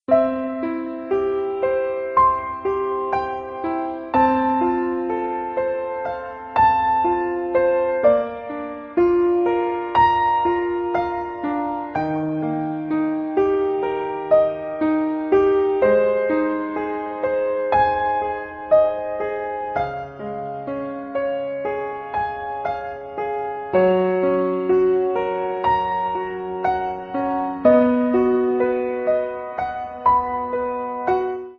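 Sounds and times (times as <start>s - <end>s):
romantic music: 0.1s - 31.5s.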